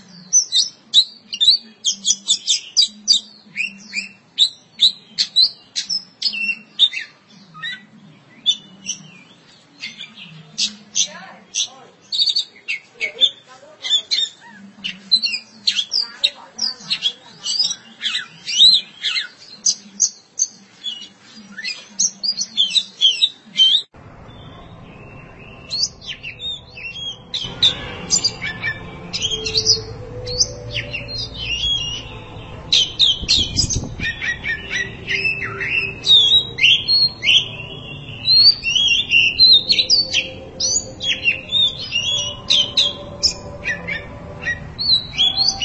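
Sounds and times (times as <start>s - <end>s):
oriental magpie-robin singing: 0.0s - 45.6s
background rumble: 24.0s - 45.6s.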